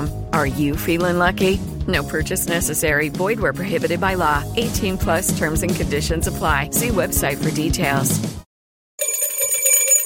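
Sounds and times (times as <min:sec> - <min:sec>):
speech: 0:00.4 - 0:08.4
bell ringing: 0:09.0 - 0:10.0.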